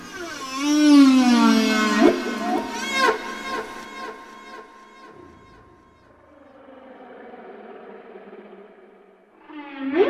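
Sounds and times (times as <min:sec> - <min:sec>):
whale song: 0:00.0 - 0:05.2, 0:06.6 - 0:10.0.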